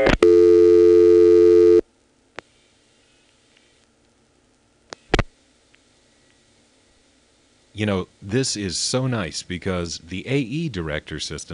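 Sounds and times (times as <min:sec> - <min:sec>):
steady telephone tone: 0:00.0 - 0:01.8
speech: 0:07.8 - 0:11.5.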